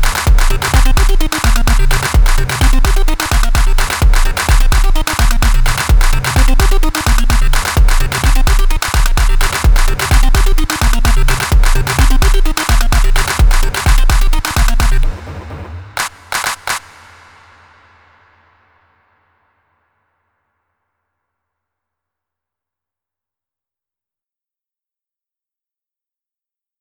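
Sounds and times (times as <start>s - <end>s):
compressed handclaps: 0.0s - 17.2s
compressed drum beat: 0.0s - 17.3s.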